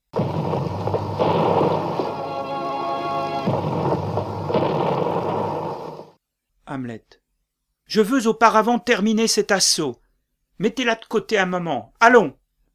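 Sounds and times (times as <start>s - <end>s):
cannon fire outside: 0.1s - 2.5s, 3.4s - 6.2s
trumpets sounding: 1.2s - 5.9s
speech: 6.7s - 7.2s, 7.9s - 10.0s, 10.6s - 12.4s.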